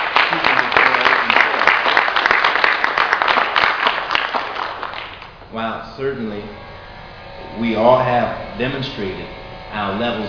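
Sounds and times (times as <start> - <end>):
audience applause: 0.0 - 5.4
speech: 5.6 - 6.7, 7.4 - 10.2.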